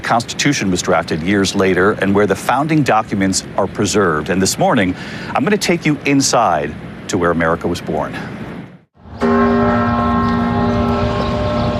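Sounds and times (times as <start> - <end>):
speech: 0.1 - 8.4
bells tolling at Independence Hall in Philadelphia: 9.0 - 11.7.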